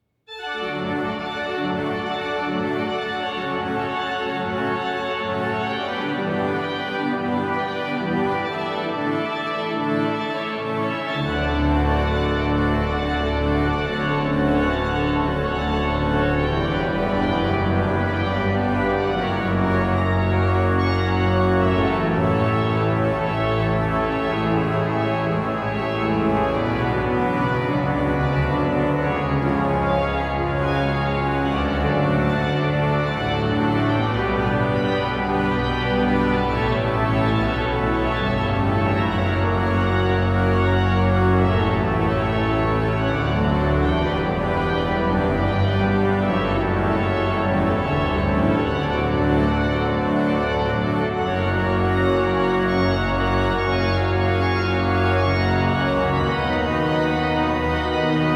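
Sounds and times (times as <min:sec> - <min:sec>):
organ improvisation toccata: 0:00.3 - 0:58.3.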